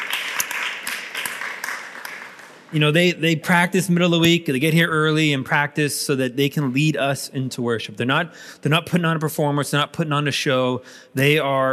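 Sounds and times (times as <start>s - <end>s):
crowd applauding the worship team: 0.0s - 2.8s
speech: 2.7s - 11.7s.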